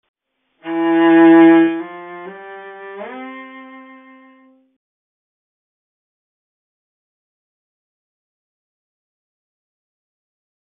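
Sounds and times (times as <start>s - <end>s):
cello: 0.6s - 4.8s.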